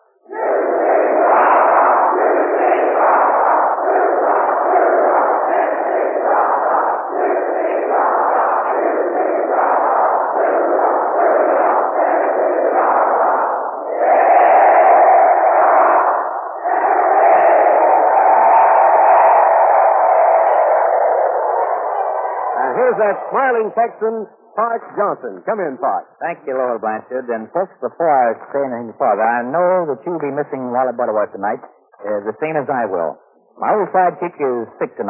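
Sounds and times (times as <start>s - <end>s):
students of the University of Tennessee cheering: 0.3s - 23.4s
speech: 23.0s - 35.0s.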